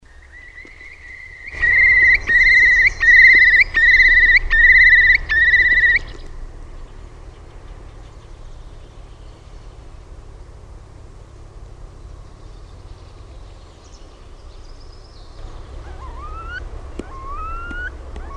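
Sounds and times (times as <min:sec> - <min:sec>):
Eurasian curlew bubbling call: 0:00.3 - 0:06.4, 0:15.6 - 0:18.3.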